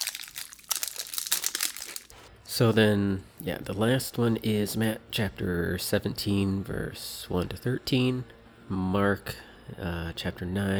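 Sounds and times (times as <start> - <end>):
crunchy chewing of food: 0.0 - 2.3
snack wrapper crinkling: 0.0 - 2.3
speech: 2.5 - 10.7.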